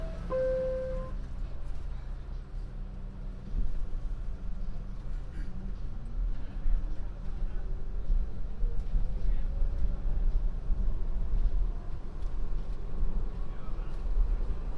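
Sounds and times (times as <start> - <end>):
faint rising whine from the train wheels or motor: 0.0 - 1.2
short tone: 0.0 - 1.2
downtown local 1 subway train rumbling: 0.0 - 14.7.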